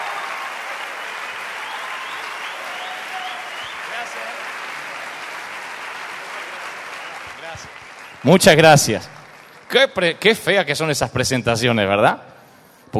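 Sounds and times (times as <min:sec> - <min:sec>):
faint whistles and cheers: 0:00.0 - 0:08.5
applause from a large audience welcoming a speaker: 0:00.0 - 0:10.6
speech: 0:07.6 - 0:12.3.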